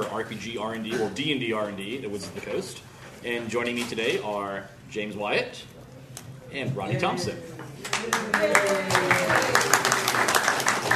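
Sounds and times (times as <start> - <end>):
speech: 0.2 - 5.8, 6.5 - 10.9
small group clapping: 7.6 - 10.9.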